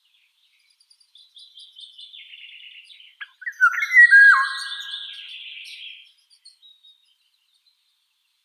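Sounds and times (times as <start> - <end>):
Eurasian golden oriole whistling: 3.4 - 5.1.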